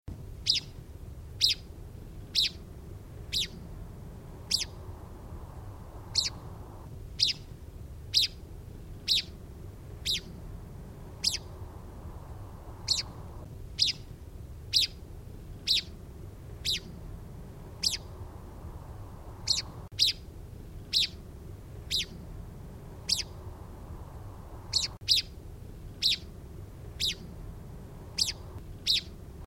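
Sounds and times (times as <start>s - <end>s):
low rumbling background noise: 0.1s - 29.4s
bird calls: 0.4s - 0.8s, 1.4s - 3.7s, 4.4s - 7.5s, 8.1s - 8.4s, 9.0s - 10.4s, 11.0s - 14.1s, 14.7s - 15.0s, 15.6s - 16.0s, 16.6s - 17.0s, 17.6s - 18.2s, 18.8s - 20.2s, 20.8s - 21.2s, 21.8s - 22.2s, 22.8s - 25.3s, 25.9s - 26.3s, 26.9s - 27.3s, 28.0s - 29.2s.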